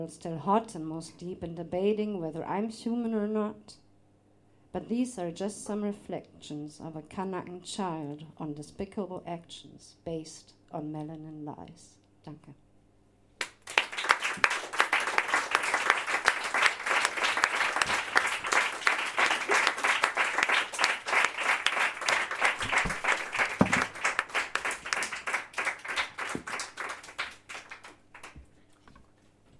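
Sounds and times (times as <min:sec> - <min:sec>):
speech: 0:00.0 - 0:03.8, 0:04.7 - 0:12.6
audience applause following a spoken-word performance: 0:13.4 - 0:28.4.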